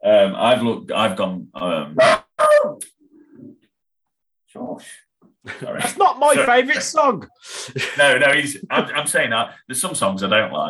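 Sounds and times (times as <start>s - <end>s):
speech: 0.2s - 2.2s, 6.2s - 10.6s
pet dog barking at home: 2.0s - 2.8s.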